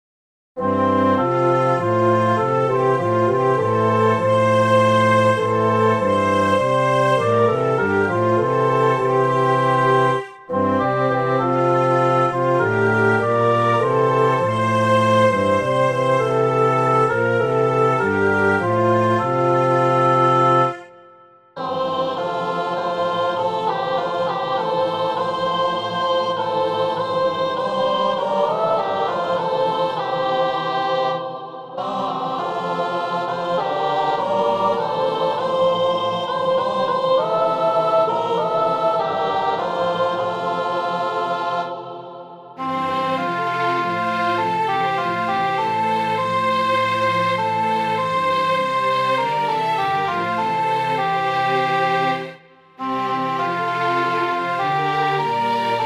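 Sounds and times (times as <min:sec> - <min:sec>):
psalm in F major: 0:00.6 - 0:55.8.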